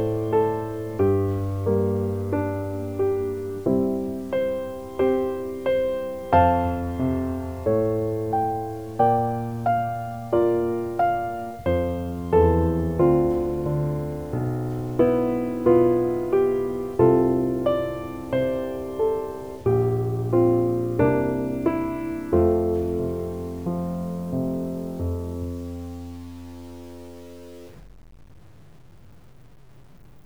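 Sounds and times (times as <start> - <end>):
embellished folk melody: 0.0 - 26.6.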